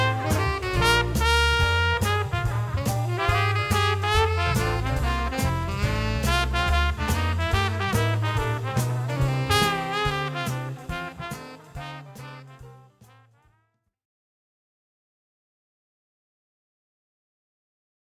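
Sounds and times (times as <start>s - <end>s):
Dixieland band playing: 0.0s - 13.2s.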